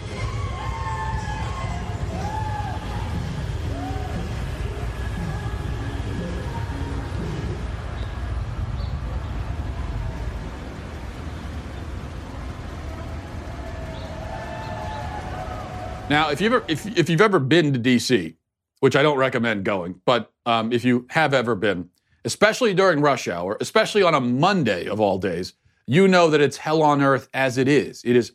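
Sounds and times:
sirens wailing: 0.0s - 17.2s
dense city traffic rumble: 0.0s - 17.3s
speech: 16.1s - 28.3s.

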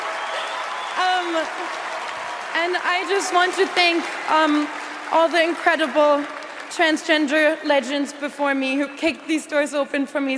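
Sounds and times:
audience cheering and applause: 0.0s - 6.6s
speech: 1.0s - 1.9s, 2.5s - 10.3s.

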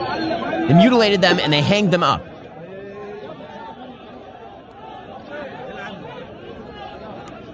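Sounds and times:
crowd shouting and cheering: 0.7s - 2.3s
speech: 0.7s - 2.3s.

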